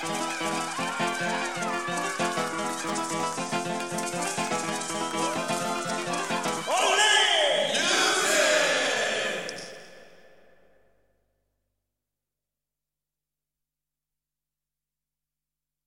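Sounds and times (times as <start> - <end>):
jingle: 0.0 - 6.7
laughter: 0.0 - 8.6.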